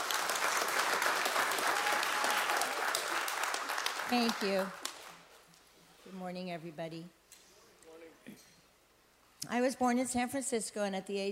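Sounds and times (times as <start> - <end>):
round of applause: 0.0 - 5.2
speech: 4.1 - 4.8, 6.1 - 7.2, 9.5 - 11.3.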